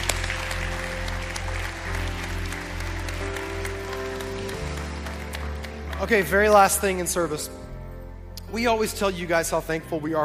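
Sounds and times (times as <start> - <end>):
church congregation applauding to welcome new believers: 0.0 - 7.4
low sustained musical tones: 0.0 - 10.2
speech: 6.0 - 7.6, 8.5 - 10.2.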